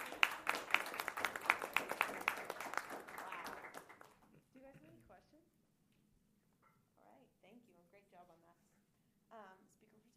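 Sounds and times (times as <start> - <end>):
small group applauding: 0.0 - 4.4.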